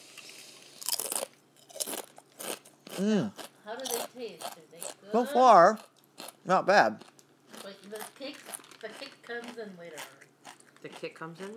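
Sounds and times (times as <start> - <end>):
kettle cooked jalapeno chips being bitten and chewed: 0.8 - 5.0, 7.0 - 11.5
speech: 3.0 - 7.1, 7.9 - 10.2, 10.8 - 11.5.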